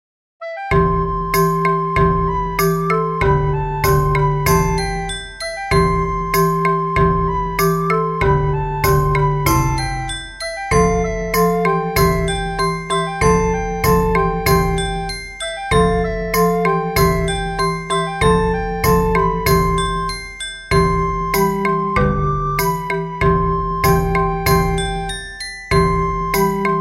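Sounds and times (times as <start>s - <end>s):
instrumental ensemble: 0.6s - 26.8s.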